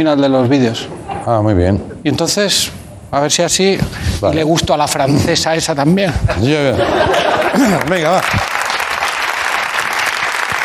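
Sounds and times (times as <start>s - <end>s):
speech: 0.0s - 8.6s
laughter: 6.2s - 8.6s
audience clapping: 7.1s - 10.6s.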